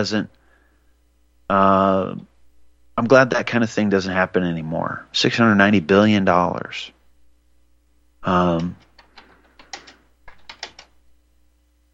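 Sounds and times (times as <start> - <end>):
speech: 0.0 - 0.4, 1.5 - 2.3, 3.0 - 7.0, 8.2 - 8.9
typing a search query on a computer keyboard: 8.6 - 11.0.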